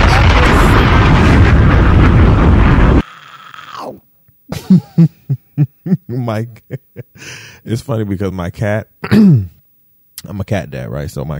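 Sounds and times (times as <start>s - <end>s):
bomb explosion sound effect: 0.0s - 3.0s
speech: 4.7s - 5.1s, 6.3s - 9.6s, 10.2s - 11.3s.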